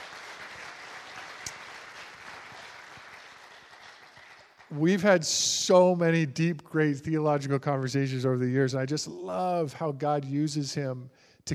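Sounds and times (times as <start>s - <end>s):
audience clapping: 0.0s - 5.2s
speech: 4.7s - 11.5s.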